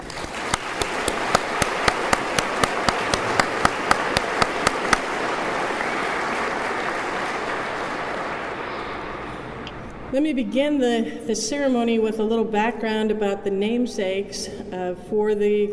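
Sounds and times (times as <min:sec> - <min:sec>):
round of applause: 0:00.0 - 0:09.6
speech: 0:10.2 - 0:15.7.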